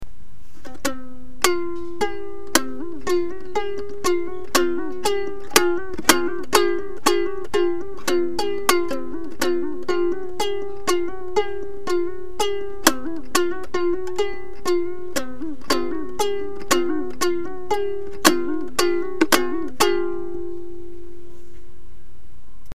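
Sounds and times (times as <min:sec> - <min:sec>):
koto: 0:00.4 - 0:21.7.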